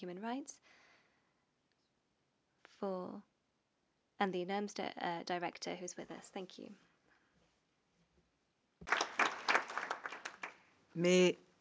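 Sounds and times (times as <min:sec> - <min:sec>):
speech: 0:00.0 - 0:00.8, 0:02.8 - 0:03.3, 0:04.2 - 0:06.9, 0:11.0 - 0:11.5
applause: 0:08.8 - 0:10.7.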